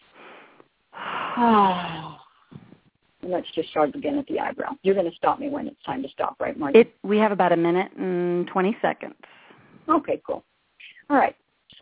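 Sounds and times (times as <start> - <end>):
deep breath: 0.0 - 2.9, 9.2 - 9.9
voiced sigh: 1.0 - 2.7
speech: 1.4 - 2.0, 3.3 - 10.5, 11.1 - 11.8.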